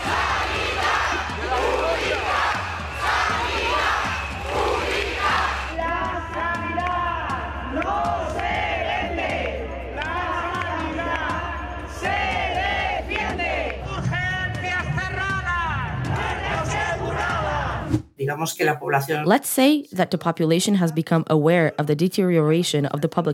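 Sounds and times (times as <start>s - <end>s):
protest crowd chanting: 0.0s - 17.9s
speech: 18.4s - 23.3s.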